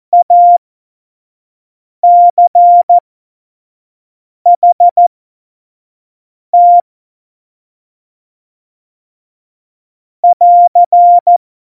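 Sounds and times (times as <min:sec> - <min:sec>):
CW Morse code at tempo 70: 0:00.2 - 0:00.6, 0:02.0 - 0:03.0, 0:04.5 - 0:05.0, 0:06.6 - 0:06.8, 0:10.2 - 0:11.4.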